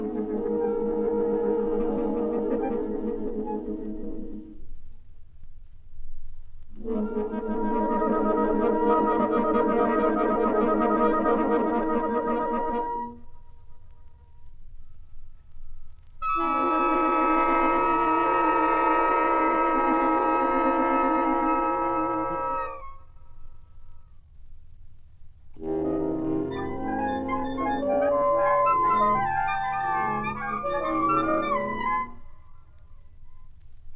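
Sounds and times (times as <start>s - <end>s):
saxophone orchestra: 0.0s - 4.6s, 6.8s - 13.2s, 16.2s - 22.8s, 25.6s - 32.3s.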